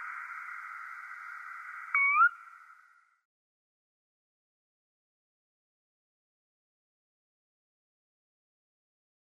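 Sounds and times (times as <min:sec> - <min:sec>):
male sora display call: 0:00.0 - 0:03.2.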